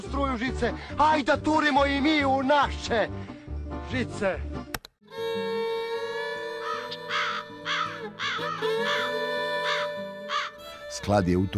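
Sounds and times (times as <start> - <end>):
speech: 0.1 - 4.6, 11.0 - 11.5
droning music: 5.1 - 11.5
magpies chattering: 6.7 - 9.0.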